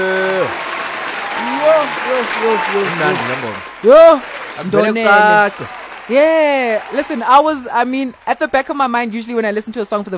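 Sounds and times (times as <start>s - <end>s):
loud whoop: 0.0s - 4.0s
audience applause and cheering for a performer: 0.0s - 9.1s
speech: 2.1s - 10.1s.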